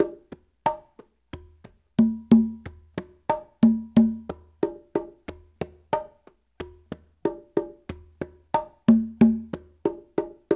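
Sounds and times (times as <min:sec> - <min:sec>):
Latin congas at 93 bpm: 0:00.0 - 0:10.5.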